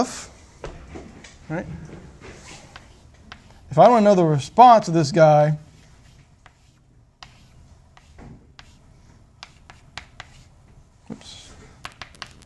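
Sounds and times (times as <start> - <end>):
speech: 0.0 - 0.3, 1.5 - 2.1, 3.7 - 5.7
writing an equation on a board: 2.4 - 3.7, 5.7 - 10.6, 11.8 - 12.4
sharp taps and clicks: 11.8 - 12.4.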